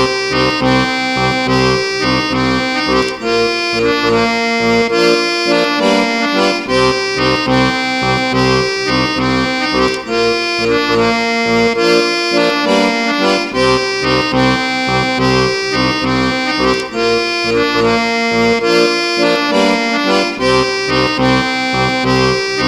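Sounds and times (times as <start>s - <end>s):
accordion: 0.0s - 22.6s.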